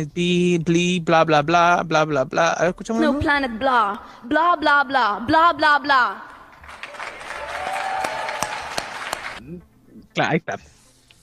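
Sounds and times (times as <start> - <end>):
speech: 0.0 - 6.3, 9.4 - 10.8
audience applause: 6.5 - 9.4.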